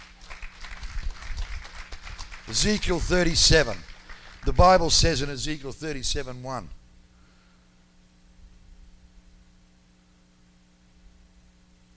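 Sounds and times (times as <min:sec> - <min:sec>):
crowd applause: 0:00.0 - 0:04.6
speech: 0:02.5 - 0:06.8.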